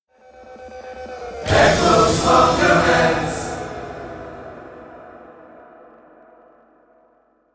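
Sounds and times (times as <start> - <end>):
chorus singing: 1.3 - 6.4.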